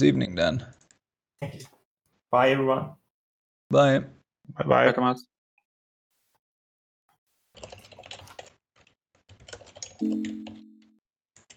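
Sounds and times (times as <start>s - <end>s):
speech: 0.0s - 0.8s, 1.4s - 3.0s, 3.7s - 5.3s, 10.0s - 10.4s
typing on a computer keyboard: 7.6s - 11.5s.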